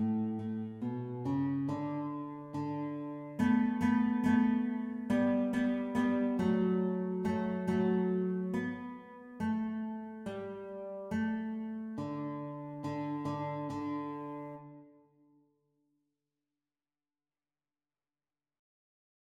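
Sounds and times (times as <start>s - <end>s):
guitar duet: 0.0s - 15.0s.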